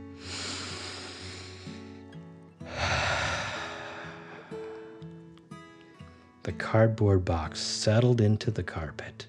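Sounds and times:
slow deep breaths in and out: 0.1 - 6.2
speech: 6.5 - 9.2.

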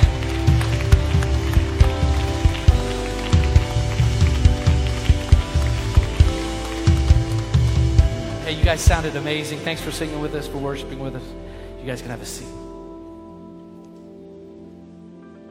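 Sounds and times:
audience clapping hands: 0.0 - 10.2
speech: 8.7 - 12.6.

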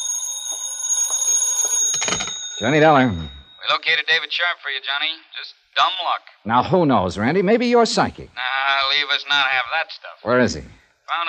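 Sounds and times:
telephone ringing: 0.0 - 4.0
speech: 2.0 - 11.2.

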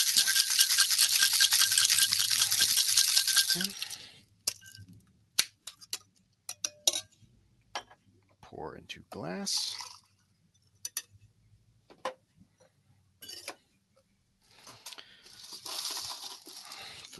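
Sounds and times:
crushed ice rattling in a cocktail shaker: 0.0 - 4.7, 9.5 - 10.1, 15.4 - 16.9
speech: 3.6 - 3.8, 8.8 - 9.8.

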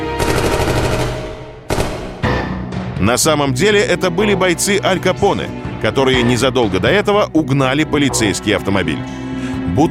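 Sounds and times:
submachine gun fire: 0.1 - 2.3
speech: 3.0 - 9.2, 9.8 - 9.9.

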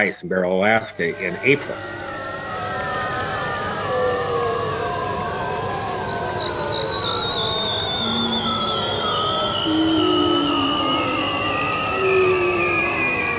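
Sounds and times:
speech: 0.0 - 2.0
bowhead whales calling off Barrow Alaska: 0.6 - 13.3
ringed seals and bearded seals calling off Barrow Alaska: 1.0 - 5.3, 7.6 - 13.3.

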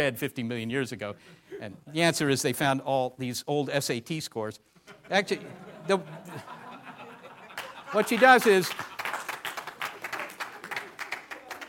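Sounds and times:
speech: 0.0 - 6.6, 7.9 - 9.0
laughter: 4.8 - 11.6
lecture audience applauding a joke: 7.4 - 11.6.

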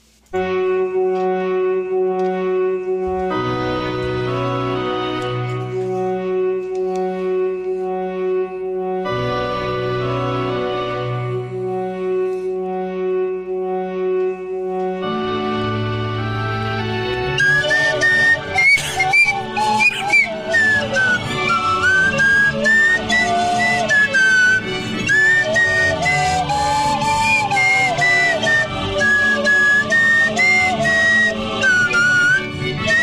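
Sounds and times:
bright tuneful game theme song: 0.4 - 33.0
slide whistle sweeping upward: 17.0 - 33.0.

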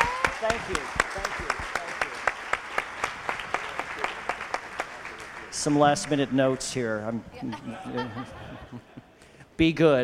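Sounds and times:
audience applause: 0.0 - 7.1
speech: 0.4 - 1.5, 5.6 - 9.0, 9.6 - 10.0
laughter: 7.4 - 9.3.

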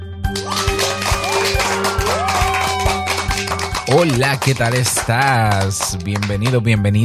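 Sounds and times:
applause and cheering: 0.3 - 6.9
rhythmic music track: 0.3 - 7.0
speech: 4.0 - 7.0.

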